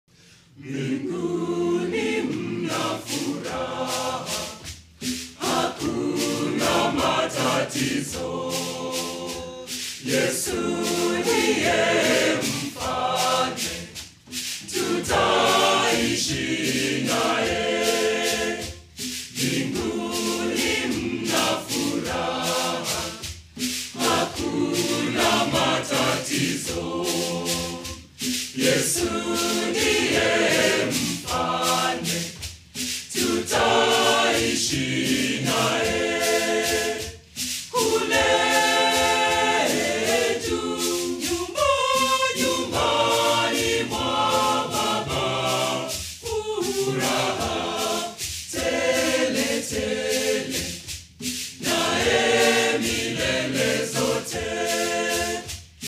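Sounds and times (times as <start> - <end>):
church choir singing: 0.5 - 55.8.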